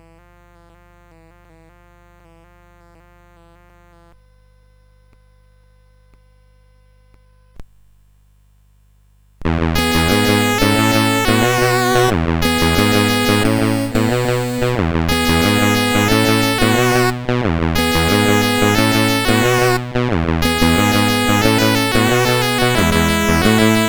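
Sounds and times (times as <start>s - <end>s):
Commodore CSG8580R5 sound chip music: 9.5s - 23.8s.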